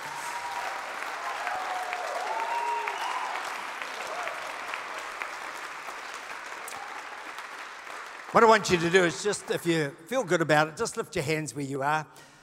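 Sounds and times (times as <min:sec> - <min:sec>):
brief cheer: 0:00.0 - 0:04.8
crowd applauding: 0:00.0 - 0:10.4
speech: 0:08.3 - 0:12.3.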